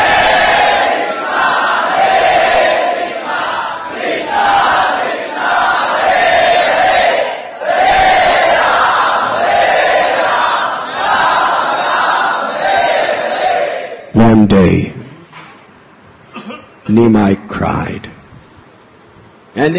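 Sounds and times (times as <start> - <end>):
crowd of voices chanting devotional phrases: 0.0 - 14.1
speech: 17.0 - 18.0, 19.6 - 19.7.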